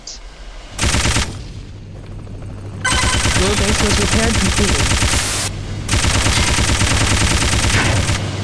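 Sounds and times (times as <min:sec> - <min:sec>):
machine gun firing in a video game: 0:00.8 - 0:01.5, 0:02.8 - 0:08.3
speech: 0:03.4 - 0:05.3.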